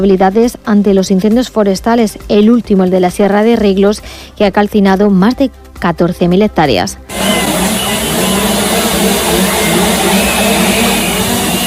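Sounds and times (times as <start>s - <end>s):
speech: 0.0s - 7.4s
chainsaw running at a protest: 7.1s - 11.6s.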